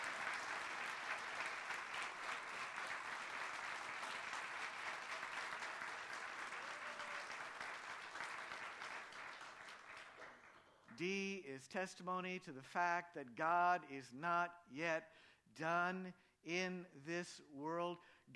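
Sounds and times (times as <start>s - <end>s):
audience applause honouring an unsung hero at a gathering: 0.0s - 10.9s
speech: 11.0s - 18.3s.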